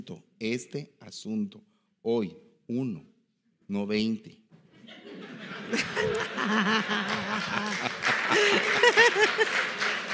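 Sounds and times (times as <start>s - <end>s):
speech: 0.0s - 3.1s, 3.7s - 5.0s, 5.6s - 9.9s
audience laughing and chuckling: 4.8s - 10.1s
scattered audience applause: 5.7s - 10.1s.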